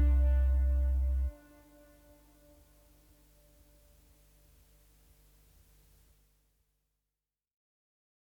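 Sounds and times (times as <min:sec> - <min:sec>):
soft ambient jazz relaxation music: 0:00.0 - 0:04.0.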